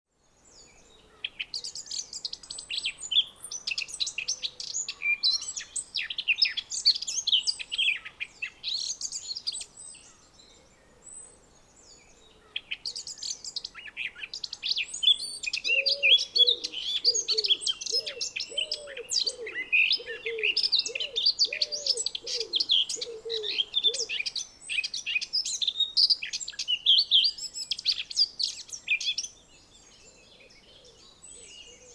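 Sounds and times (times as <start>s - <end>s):
Eurasian blackcap song: 0.1s - 31.9s
low cooing: 15.7s - 24.1s.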